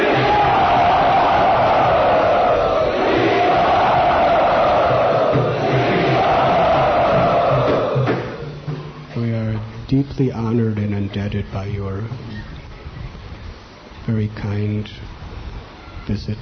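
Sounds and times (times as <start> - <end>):
crowd cheering in welcome at a temple: 0.0 - 8.6
speech: 10.2 - 12.5, 14.1 - 15.2, 16.1 - 16.3.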